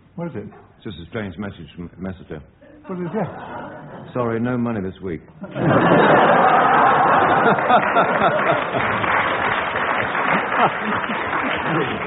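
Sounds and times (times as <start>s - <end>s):
speech: 0.2s - 9.2s, 10.6s - 12.0s
laughter: 2.9s - 4.2s, 5.4s - 12.0s
audience applause: 5.8s - 12.0s.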